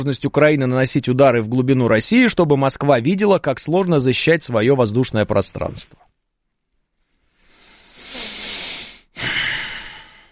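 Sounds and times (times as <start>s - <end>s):
speech: 0.0s - 6.2s
heavy breathing into the microphone: 7.2s - 10.3s.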